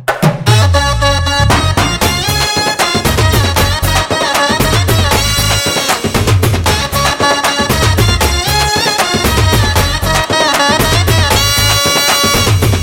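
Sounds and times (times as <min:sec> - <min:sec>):
instrumental music: 0:00.0 - 0:12.8.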